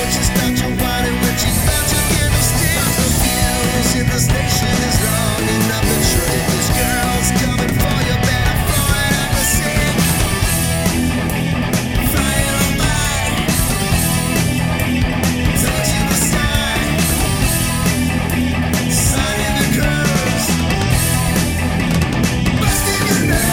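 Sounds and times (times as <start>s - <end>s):
karaoke harmony full mix: 0.0s - 23.5s.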